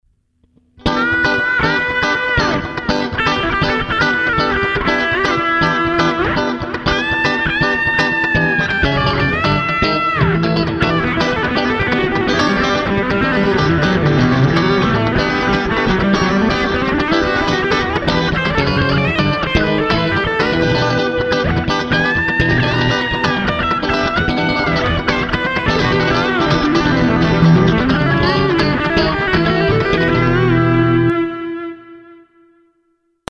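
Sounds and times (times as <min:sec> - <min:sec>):
funk rock music: 0:00.8 - 0:31.5.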